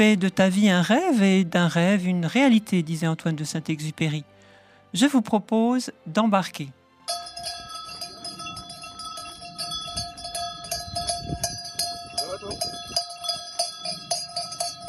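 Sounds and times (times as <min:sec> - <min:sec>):
speech: 0:00.0 - 0:07.6
sheep bells jingling as a flock of ewes walks through town streets: 0:07.0 - 0:14.8
steady tonal ring: 0:07.0 - 0:14.8.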